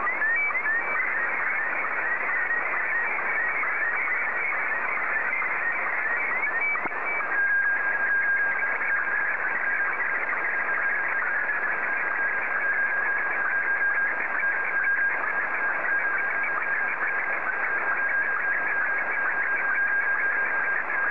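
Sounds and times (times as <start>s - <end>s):
SSTV Martin 1 signal: 0.0s - 21.0s.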